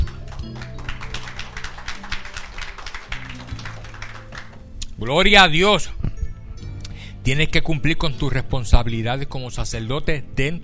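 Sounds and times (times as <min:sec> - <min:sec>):
audience applause: 0:00.0 - 0:04.8
speech: 0:05.0 - 0:06.0, 0:07.2 - 0:10.6.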